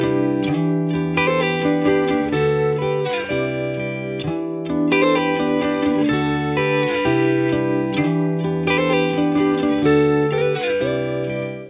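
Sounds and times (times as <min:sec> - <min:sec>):
guitars: 0:00.0 - 0:11.6.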